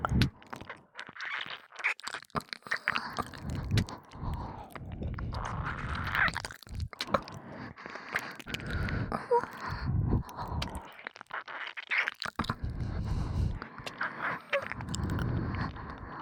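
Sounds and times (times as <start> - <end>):
ear licking in both ears: 0.0 - 16.1
breathing sounds in both ears: 2.6 - 11.1, 12.4 - 16.1.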